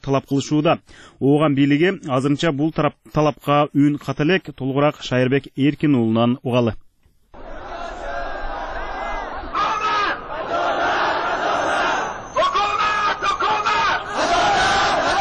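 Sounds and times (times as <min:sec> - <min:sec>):
speech: 0:00.1 - 0:06.8
crowd of Hazara protesters chanting for justice in the streets of Kabul: 0:07.4 - 0:15.2.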